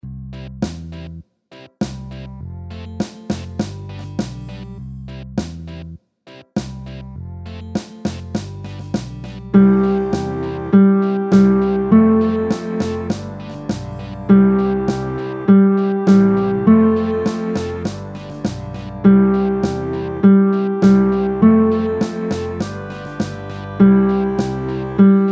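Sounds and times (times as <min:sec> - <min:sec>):
reggae guitar: 0:09.6 - 0:25.3.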